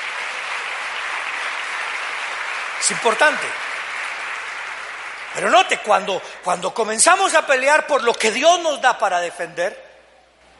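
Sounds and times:
loud applause: 0.0s - 6.7s
speech: 2.9s - 3.7s, 5.4s - 9.8s.

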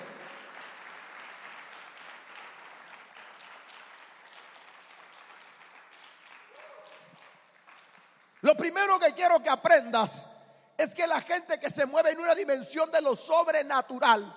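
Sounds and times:
applause: 0.0s - 9.1s
speech: 8.4s - 14.3s.

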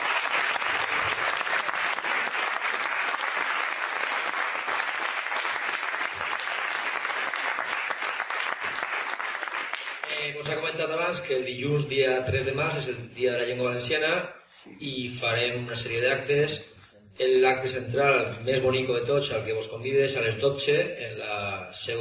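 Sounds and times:
audience applause: 0.0s - 10.2s
speech: 10.8s - 21.9s.

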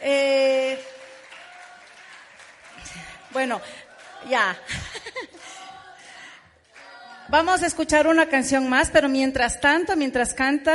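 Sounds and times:
audience applause: 0.4s - 7.3s
laughter: 2.6s - 6.1s
speech: 3.4s - 5.3s, 7.3s - 10.7s.

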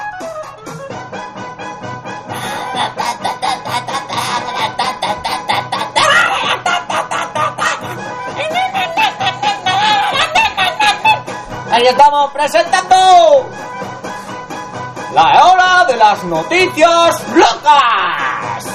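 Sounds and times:
goose honking: 2.3s - 8.0s
laughter: 2.3s - 11.5s
speech: 11.9s - 13.6s, 15.2s - 18.2s.

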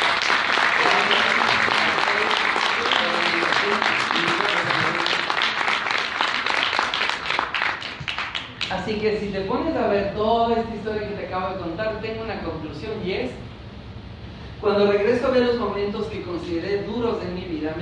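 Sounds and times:
audience applause: 0.0s - 8.7s
speech: 8.8s - 13.5s, 14.6s - 17.7s.

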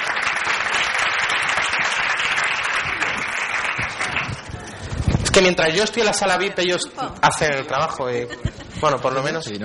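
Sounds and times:
audience applause: 0.0s - 5.0s
speech: 5.4s - 9.6s
laughter: 6.4s - 9.3s.

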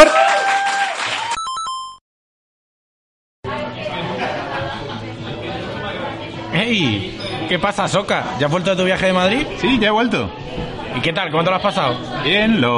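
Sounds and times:
audience applause: 0.0s - 1.4s
crowd voices: 3.4s - 12.7s
speech: 6.7s - 12.7s.

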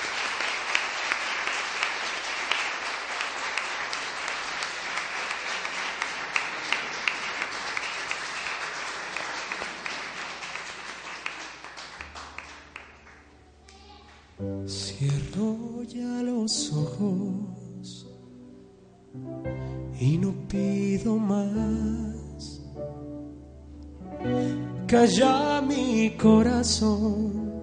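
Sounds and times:
crowd applauding: 0.0s - 14.3s
music: 12.0s - 27.6s
speech: 14.7s - 17.6s, 20.0s - 22.0s, 24.9s - 27.3s.

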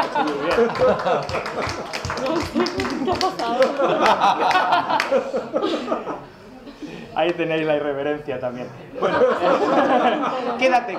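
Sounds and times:
audience applause: 0.0s - 5.3s
laughter: 0.0s - 7.2s, 8.8s - 10.9s
speech: 0.2s - 6.3s, 7.2s - 10.9s.

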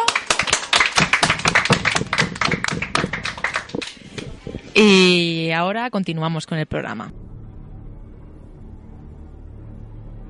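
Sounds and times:
audience applause: 0.0s - 4.8s
speech: 4.8s - 7.2s.

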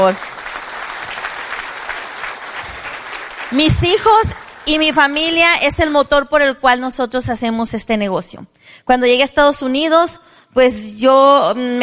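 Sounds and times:
speech: 0.0s - 0.4s, 3.5s - 11.8s
audience applause: 0.0s - 5.2s.

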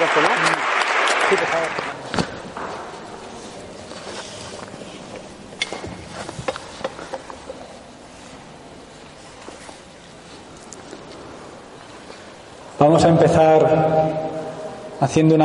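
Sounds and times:
speech: 0.0s - 0.6s, 1.3s - 2.0s, 12.8s - 13.8s, 15.0s - 15.4s
audience applause: 0.0s - 2.0s.

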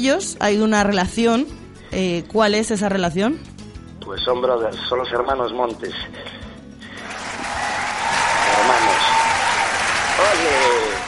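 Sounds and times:
speech: 0.0s - 6.4s
applause: 7.0s - 11.0s.

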